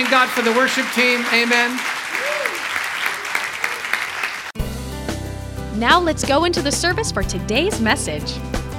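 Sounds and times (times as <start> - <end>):
speech: 0.0 - 2.0, 5.8 - 8.6
audience applauding with hand claps: 0.0 - 4.6.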